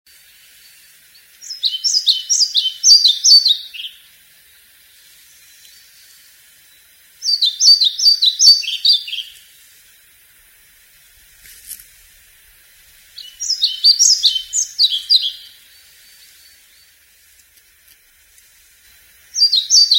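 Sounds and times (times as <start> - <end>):
pied flycatcher voice: 0.5 - 10.8, 12.0 - 17.3, 18.5 - 19.9.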